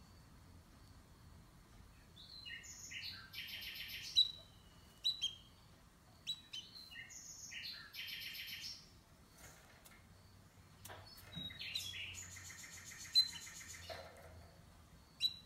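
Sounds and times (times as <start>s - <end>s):
canary singing sustained trilled tours: 2.2s - 8.9s, 10.9s - 14.2s, 15.1s - 15.4s.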